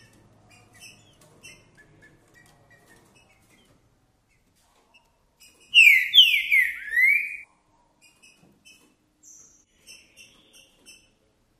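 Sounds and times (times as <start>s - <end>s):
green-winged saltator whistled song: 5.8s - 7.4s.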